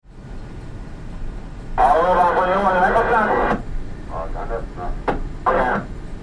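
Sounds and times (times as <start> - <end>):
large ferry bridge ambience: 1.8 - 6.0.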